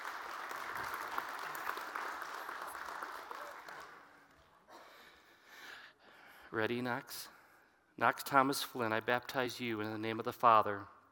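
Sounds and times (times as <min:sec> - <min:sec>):
audience applause: 0:00.0 - 0:04.3
speech: 0:06.6 - 0:07.4, 0:08.0 - 0:11.0.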